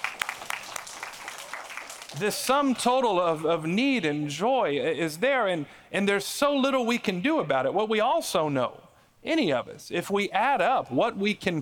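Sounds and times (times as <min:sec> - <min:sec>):
audience applause: 0:00.0 - 0:02.4
speech: 0:02.1 - 0:11.6.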